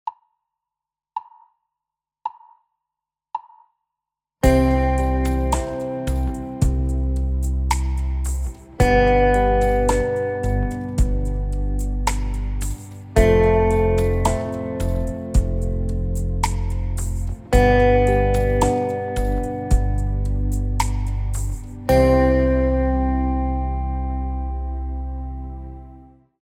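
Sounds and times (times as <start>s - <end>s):
whole notes: 4.4s - 16.8s, 17.5s - 26.1s.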